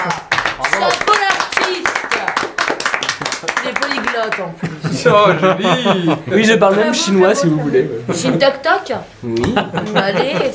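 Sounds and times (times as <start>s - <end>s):
hand clapping: 0.0s - 4.5s
speech: 4.2s - 10.5s
laughter: 4.4s - 6.8s, 9.3s - 10.5s.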